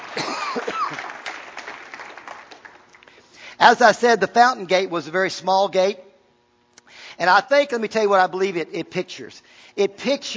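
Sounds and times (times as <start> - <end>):
audience clapping: 0.0 - 3.4
speech: 3.6 - 6.1, 7.2 - 10.3.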